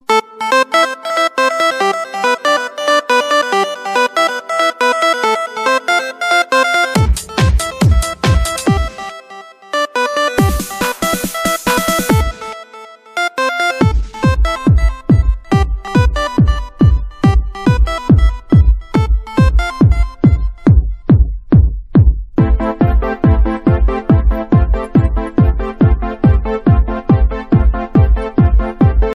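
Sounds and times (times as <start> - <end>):
disco music: 0.0 - 29.1.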